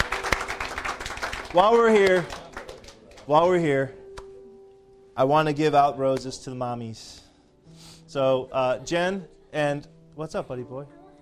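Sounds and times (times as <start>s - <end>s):
church congregation clapping hands: 0.0s - 3.9s
speech: 1.5s - 2.4s, 3.3s - 4.0s, 5.2s - 11.0s.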